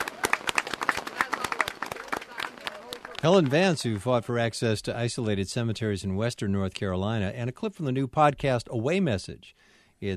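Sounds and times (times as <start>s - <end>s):
audience applause: 0.0s - 4.2s
speech: 3.2s - 10.1s.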